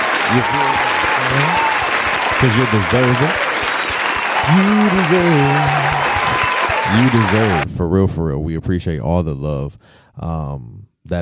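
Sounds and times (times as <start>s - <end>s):
applause: 0.0s - 7.6s
speech: 0.3s - 1.6s, 2.4s - 3.4s, 4.5s - 11.2s.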